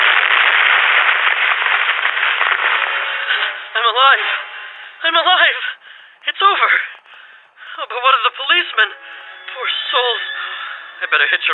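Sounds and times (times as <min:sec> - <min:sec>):
police car exploding after falling into ravine: 0:00.0 - 0:04.8
speech: 0:04.0 - 0:07.0, 0:07.8 - 0:11.5.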